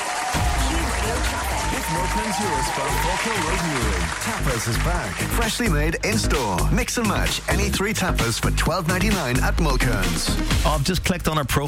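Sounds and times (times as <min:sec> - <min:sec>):
crowd cheering: 0:00.0 - 0:06.4
speech: 0:01.9 - 0:11.6.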